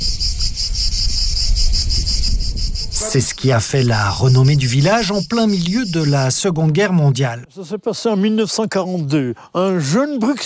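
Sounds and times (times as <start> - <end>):
cicada song: 0.0 - 7.6
speech: 3.0 - 10.4.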